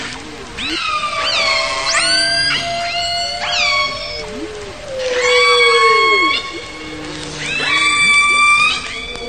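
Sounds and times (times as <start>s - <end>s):
killer whale calls: 0.0s - 9.2s.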